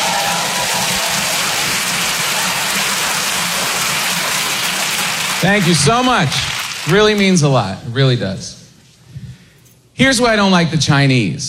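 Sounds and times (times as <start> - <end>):
crowd applauding: 0.0 - 7.6
speech: 5.4 - 8.5, 10.0 - 11.4.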